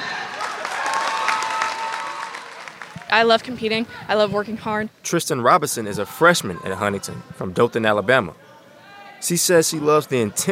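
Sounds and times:
cheers and whistles: 0.0s - 3.1s
crowd applauding in packed school gym: 0.0s - 3.3s
speech: 3.1s - 8.4s, 9.2s - 10.4s.

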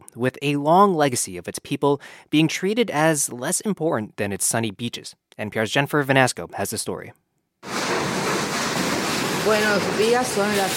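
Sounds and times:
speech: 0.2s - 7.3s, 9.4s - 10.7s
rain of Hurricane Maria battering a house: 7.6s - 10.7s.

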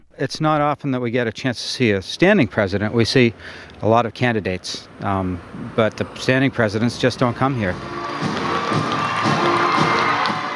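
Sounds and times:
speech: 0.2s - 8.9s
crowd of supporters cheering at an appearance by President Clinton: 7.9s - 10.5s
people clapping: 8.0s - 10.5s.

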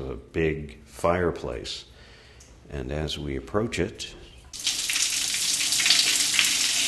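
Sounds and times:
speech: 0.0s - 1.9s, 2.7s - 4.2s
water running over the giant stone urinal at the Madonna Inn onto tile floor: 4.6s - 6.8s.

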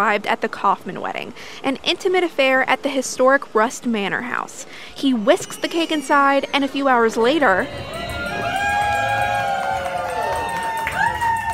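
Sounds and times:
speech: 0.0s - 8.0s
family and friends cheering as newlyweds slice wedding cake at Rust Manor House: 5.2s - 11.5s.

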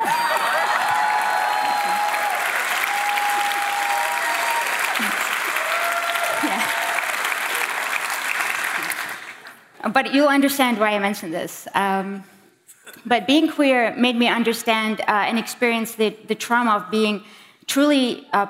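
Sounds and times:
audience applause: 0.0s - 9.7s
speech: 9.8s - 12.3s, 13.0s - 18.4s.

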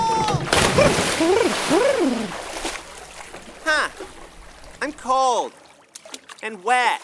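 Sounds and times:
cannonball jump splash into a new backyard pool: 0.0s - 4.8s
water sloshing in a backyard pool: 0.2s - 7.0s
person exclaiming: 1.2s - 2.3s
speech: 4.9s - 5.6s, 6.4s - 7.0s.

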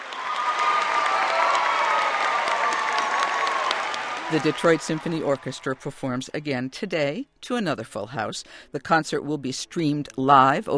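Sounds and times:
faint cheers: 0.0s - 5.6s
concert audience standing ovation applause: 0.0s - 6.2s
speech: 4.3s - 10.7s.

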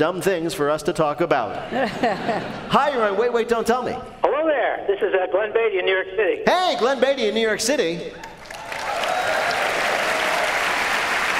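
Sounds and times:
speech: 0.0s - 8.3s
laughter: 1.5s - 3.0s
sparse audience applause: 8.2s - 11.3s.

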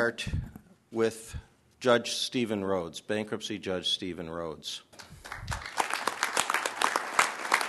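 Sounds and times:
speech: 0.0s - 5.7s
applause at a news conference: 5.0s - 7.6s.

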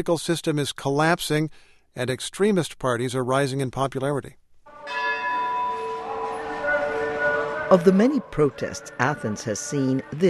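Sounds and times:
speech: 0.0s - 5.0s, 7.7s - 10.2s
large bronze bell tolling at a police protest march in Athens: 4.7s - 10.2s.

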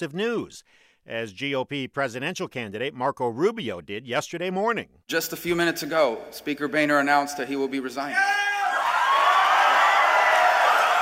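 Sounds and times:
speech: 0.0s - 8.5s
crowd applause and whoops at the Values Voter Summit in D.C.: 8.6s - 11.0s.

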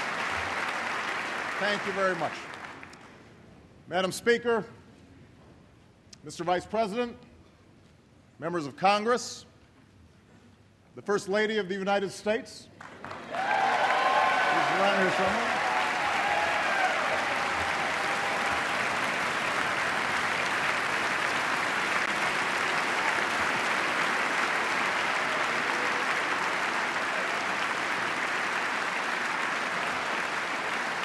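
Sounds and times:
sustained applause in a congressional chamber for the First Lady: 0.0s - 3.2s, 12.8s - 31.0s
speech: 1.6s - 2.6s, 3.9s - 4.8s, 6.2s - 7.3s, 8.4s - 9.5s, 11.0s - 13.6s, 14.8s - 15.6s.

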